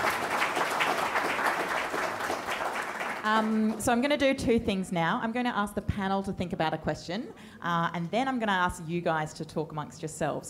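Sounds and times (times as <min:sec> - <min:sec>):
audience applause: 0:00.0 - 0:03.8
speech: 0:03.3 - 0:10.4.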